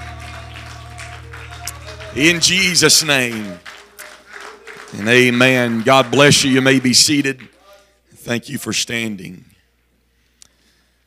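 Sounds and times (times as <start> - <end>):
audience hand clapping: 0.0 - 7.7
speech: 2.2 - 3.7, 4.9 - 7.6, 8.2 - 9.5.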